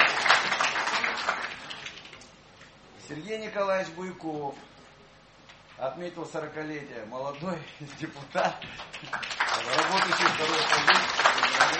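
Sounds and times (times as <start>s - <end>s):
audience applause at a legislative assembly session: 0.0s - 2.2s, 7.9s - 11.7s
speech: 3.1s - 4.8s, 5.8s - 11.7s.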